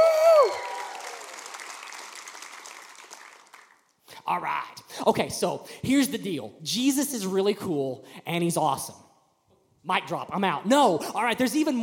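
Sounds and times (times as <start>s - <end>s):
crowd clapping in a large room: 0.0s - 4.0s
speech: 4.3s - 9.0s, 9.8s - 11.8s.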